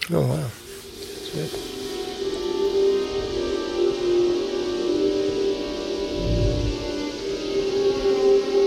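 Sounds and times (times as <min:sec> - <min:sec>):
speech: 0:00.1 - 0:00.7, 0:01.3 - 0:01.7
sonified electron cyclotron waves in space plasma: 0:02.5 - 0:08.5
low rumble: 0:06.1 - 0:07.0.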